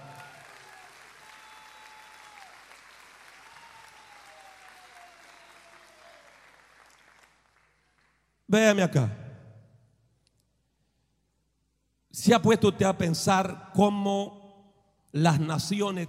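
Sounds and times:
audience applause: 0.0s - 8.2s
speech: 8.5s - 9.2s, 12.3s - 14.4s, 15.1s - 16.0s.

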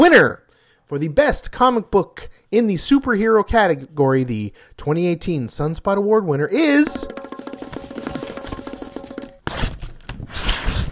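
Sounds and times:
speech: 0.0s - 7.5s
music: 6.8s - 9.4s
paper envelope being torn open: 9.4s - 10.9s.

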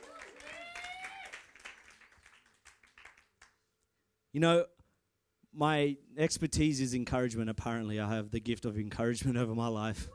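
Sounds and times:
audience clapping: 0.0s - 3.7s
speech: 4.4s - 4.8s, 5.5s - 10.1s
person calling out: 9.9s - 10.1s.

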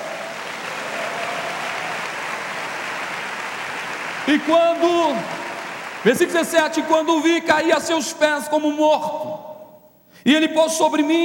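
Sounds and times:
audience applauding: 0.0s - 7.1s
speech: 4.2s - 5.4s, 6.0s - 9.5s, 10.2s - 11.2s.

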